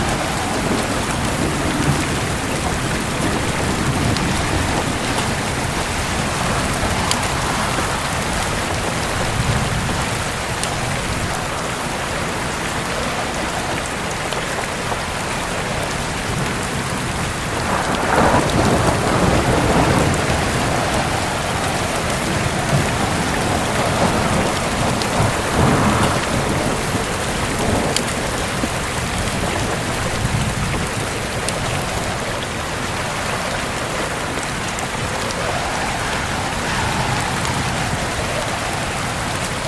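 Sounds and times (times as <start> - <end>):
thunder: 0.0 - 11.8, 16.3 - 31.0, 35.0 - 39.6
howling wind: 0.0 - 39.6
rain: 0.0 - 39.6.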